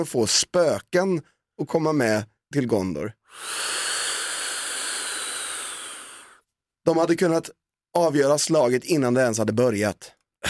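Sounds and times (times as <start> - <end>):
speech: 0.0 - 3.8, 6.9 - 10.2
asthma inhaler being used: 3.3 - 6.4.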